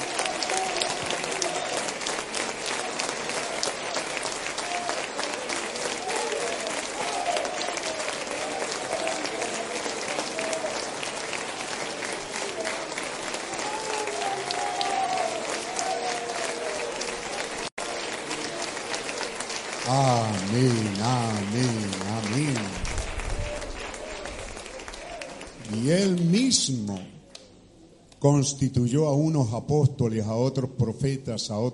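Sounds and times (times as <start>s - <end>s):
audience applause: 0.0s - 27.0s
speech: 28.2s - 31.7s.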